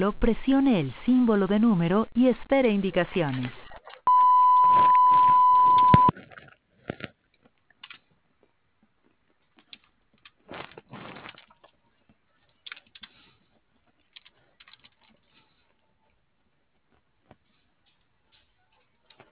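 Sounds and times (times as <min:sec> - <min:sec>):
speech: 0:00.0 - 0:03.6
voicemail beep tone: 0:04.1 - 0:06.1.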